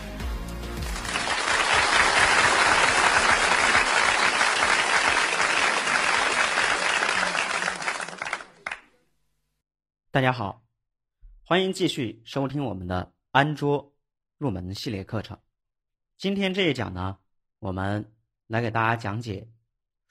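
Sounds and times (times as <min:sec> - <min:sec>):
audience applause: 0:00.8 - 0:08.9
speech: 0:10.2 - 0:10.6, 0:11.5 - 0:15.5, 0:16.2 - 0:20.0.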